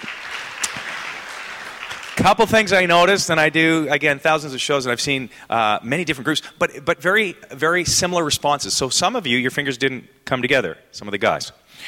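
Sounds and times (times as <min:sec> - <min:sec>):
audience applause: 0:00.0 - 0:02.8
speech: 0:02.2 - 0:11.8.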